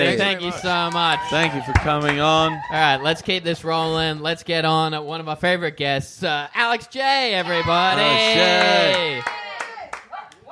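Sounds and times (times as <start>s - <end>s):
loud speaking voice: 0.0s - 9.2s
speech: 0.0s - 9.4s
scattered hand claps from a small show audience: 1.7s - 2.3s, 8.4s - 10.4s.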